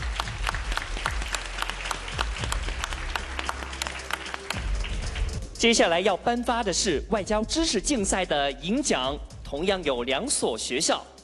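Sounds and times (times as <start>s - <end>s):
audience applause: 0.0s - 5.4s
speech: 5.6s - 11.1s.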